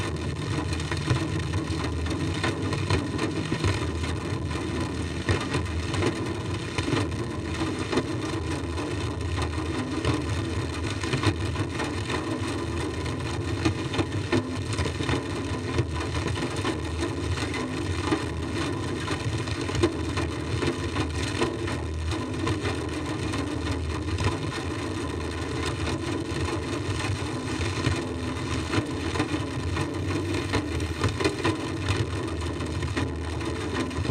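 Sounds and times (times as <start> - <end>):
drums with tape echo: 0.0 - 34.1.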